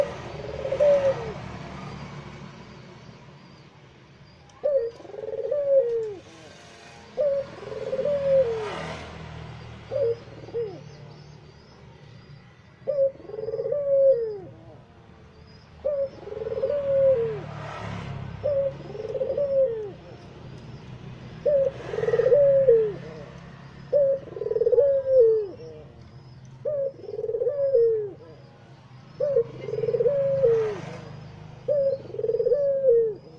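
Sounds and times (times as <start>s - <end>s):
Barbary dove cooing: 0.0s - 2.1s, 4.6s - 6.4s, 7.1s - 8.8s, 9.9s - 11.0s, 12.8s - 14.9s, 15.8s - 17.5s, 18.4s - 20.5s, 21.3s - 33.3s
faint low hum of traffic: 0.0s - 33.3s.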